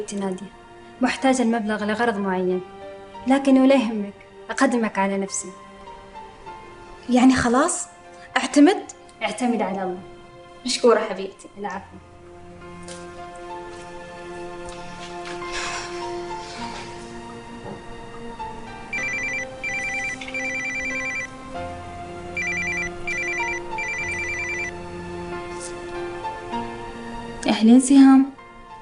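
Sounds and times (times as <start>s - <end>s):
speech: 0.0s - 5.6s, 7.1s - 12.1s, 27.6s - 28.3s
electronic telephone ringtone for an incoming call: 18.9s - 21.3s, 22.4s - 24.7s.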